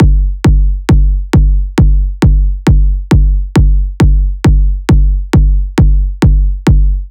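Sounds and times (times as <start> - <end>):
techno kick drum loop at 135 bpm: 0.0 - 7.0.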